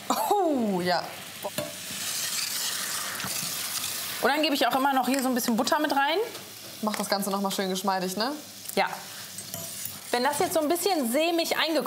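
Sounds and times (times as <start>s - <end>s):
liqueur hitting fruit sizzling in a hot pan: 0.0s - 11.8s
speech: 0.1s - 1.7s, 4.2s - 9.2s, 10.1s - 11.8s.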